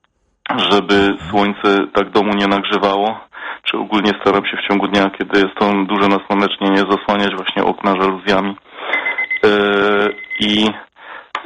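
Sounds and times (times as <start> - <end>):
speech: 0.5 - 10.8
kitchen timer alarm beeping for tea steeping: 9.0 - 9.5.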